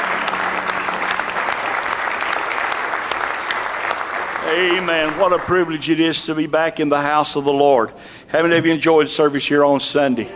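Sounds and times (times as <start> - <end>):
audience clapping in praise: 0.0 - 6.5
speech: 4.5 - 10.3.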